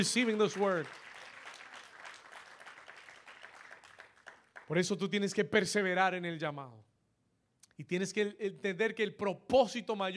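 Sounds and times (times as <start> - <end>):
speech: 0.0 - 1.0, 4.7 - 6.9, 7.8 - 10.1
audience applause: 0.0 - 4.7.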